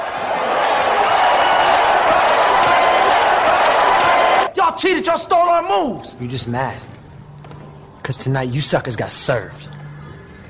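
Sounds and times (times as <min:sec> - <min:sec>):
crowd applause and cheering: 0:00.0 - 0:04.5
speech: 0:04.8 - 0:07.0, 0:08.1 - 0:09.8.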